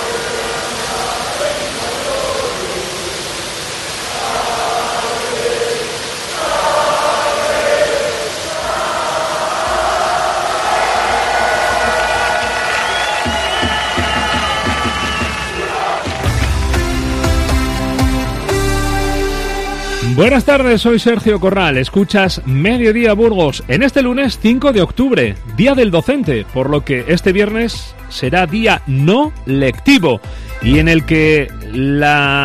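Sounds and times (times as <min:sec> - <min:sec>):
Burgos football fans celebrating at the Fuente de los Delfines: 0:00.0 - 0:21.0
speech: 0:20.2 - 0:32.4.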